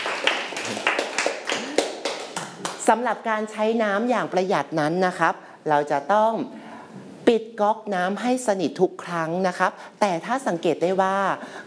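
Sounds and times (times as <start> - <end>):
classroom students clapping for classmates: 0.0 - 2.9
speech: 2.9 - 6.6, 7.3 - 11.6.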